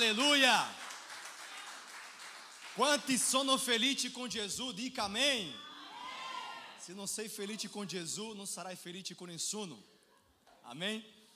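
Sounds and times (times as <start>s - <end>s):
speech: 0.0s - 0.8s, 2.8s - 5.7s, 6.9s - 9.9s, 10.7s - 11.2s
crowd applauding: 0.0s - 3.5s.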